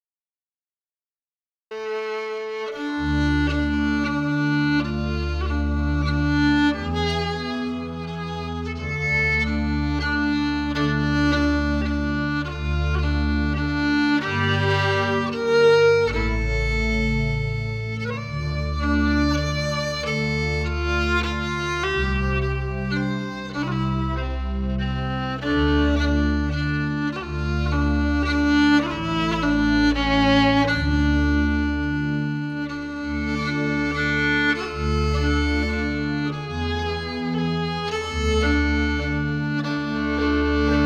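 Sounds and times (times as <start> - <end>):
fiddle: 1.7 - 40.8.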